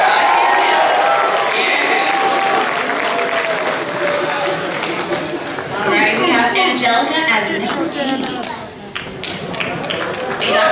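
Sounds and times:
audience applause: 0.0s - 6.2s, 7.6s - 10.7s
faint voices and cheers: 0.0s - 10.7s.

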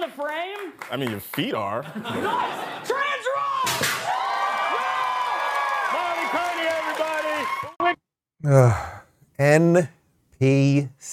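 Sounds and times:
studio audience applauding: 0.0s - 1.8s, 4.3s - 7.8s
speech: 0.0s - 3.0s, 8.4s - 11.1s
laughter: 1.8s - 3.2s
studio audience cheering: 2.2s - 8.0s.

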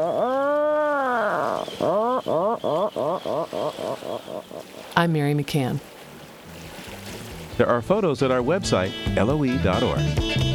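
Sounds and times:
Atlantic Puffin groaning calls: 0.0s - 5.0s
speech: 5.0s - 5.9s, 7.6s - 10.4s.

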